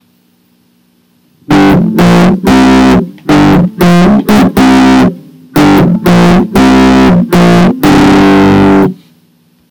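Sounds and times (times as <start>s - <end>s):
distorted sound: 1.4s - 9.0s.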